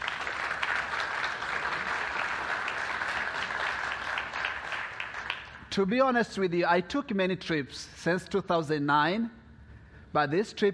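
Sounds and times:
audience applause: 0.0 - 5.6
speech: 5.8 - 9.4, 10.1 - 10.7.

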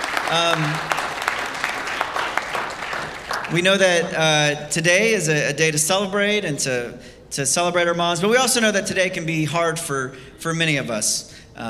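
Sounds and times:
audience clapping: 0.0 - 4.1
speech: 0.3 - 1.0, 3.5 - 11.6.

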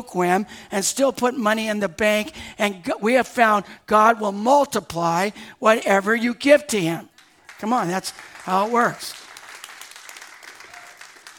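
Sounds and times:
speech: 0.0 - 9.2
thin scattered audience applause: 7.1 - 11.3.

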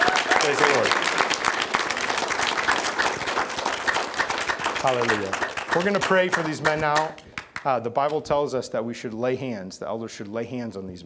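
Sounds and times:
audience applause: 0.0 - 7.7
speech: 0.5 - 1.2, 4.8 - 11.0.

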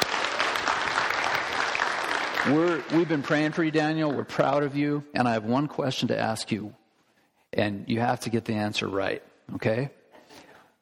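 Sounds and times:
audience clapping: 0.0 - 4.7
speech: 2.4 - 6.8, 7.6 - 10.8.

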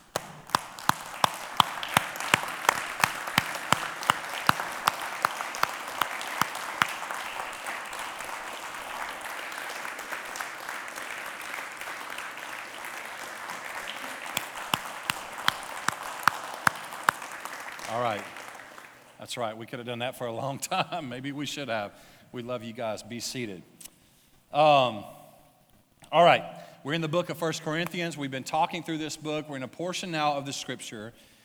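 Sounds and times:
audience applause: 0.0 - 19.2
speech: 19.3 - 23.8, 24.5 - 25.2, 26.1 - 31.3.

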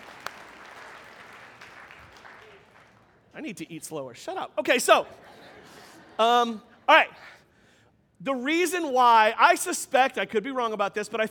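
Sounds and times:
audience applause: 0.0 - 3.2
speech: 3.4 - 5.5, 6.2 - 7.4, 8.2 - 11.2.

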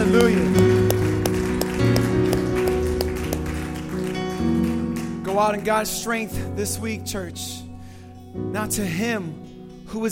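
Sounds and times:
scattered hand claps: 0.0 - 5.6
sustained instrumental chords: 0.0 - 10.1
speech: 0.1 - 0.7, 5.4 - 7.6, 8.4 - 10.1.

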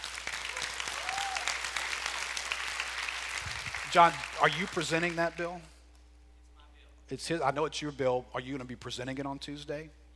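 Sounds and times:
audience applause: 0.0 - 5.4
speech: 3.9 - 5.7, 7.1 - 10.0.

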